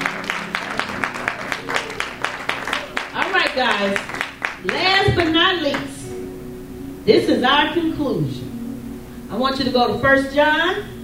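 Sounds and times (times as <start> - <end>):
audience hand clapping: 0.0 - 5.9
speech: 3.6 - 6.0, 7.1 - 8.5, 9.3 - 10.9.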